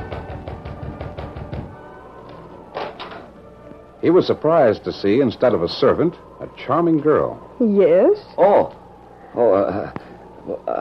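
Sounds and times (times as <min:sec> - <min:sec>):
knocking on a wooden door: 0:00.0 - 0:01.8
speech: 0:04.0 - 0:10.7.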